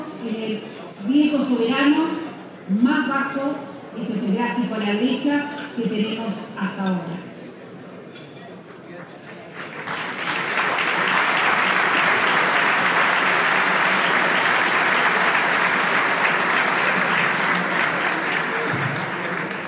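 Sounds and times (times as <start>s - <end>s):
speech: 0.3s - 7.3s
audience applause: 9.5s - 19.6s.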